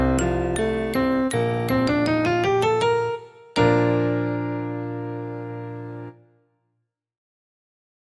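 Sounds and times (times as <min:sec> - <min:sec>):
harmonized B-flat major scale: 0:00.0 - 0:06.2.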